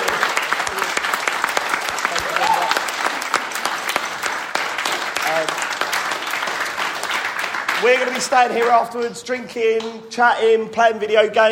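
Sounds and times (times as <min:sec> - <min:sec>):
sustained audience applause: 0:00.0 - 0:08.9
speech: 0:07.9 - 0:11.5.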